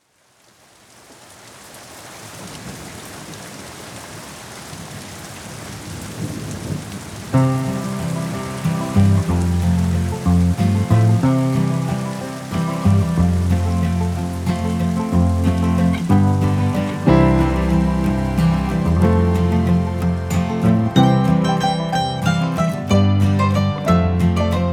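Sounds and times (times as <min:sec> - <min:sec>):
instrumental music: 0:07.4 - 0:24.7.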